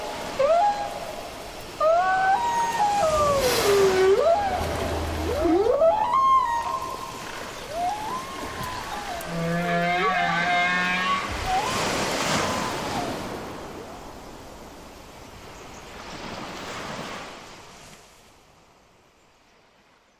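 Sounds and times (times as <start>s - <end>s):
washing ocean noise: 0.0s - 18.2s
North Atlantic right whale tonal calls: 1.8s - 13.2s.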